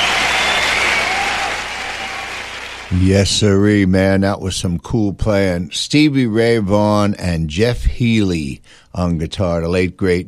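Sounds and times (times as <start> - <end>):
audience applause after a live guitar performance: 0.0 - 3.0
speech: 2.9 - 10.2.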